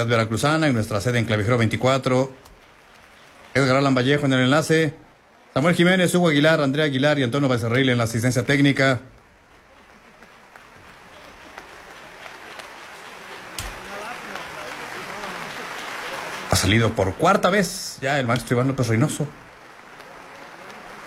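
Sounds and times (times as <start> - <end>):
speech: 0.0 - 2.5, 3.6 - 9.2, 16.7 - 19.5
concert audience applause: 0.0 - 5.8, 7.6 - 21.0.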